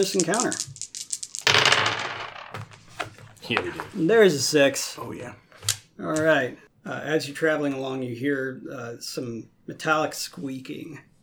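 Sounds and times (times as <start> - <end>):
speech: 0.0 - 0.8, 3.5 - 11.1
three six-sided dice rolling: 0.0 - 4.0, 5.6 - 6.3.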